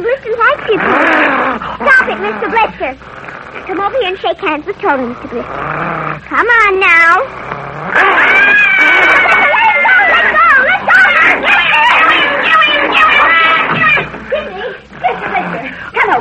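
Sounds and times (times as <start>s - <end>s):
dogs snarling in a fight: 0.1s - 16.1s
speech: 2.3s - 9.4s, 15.6s - 16.1s
small dog yelping in a dog fight: 7.9s - 14.1s
laughter: 8.4s - 16.1s.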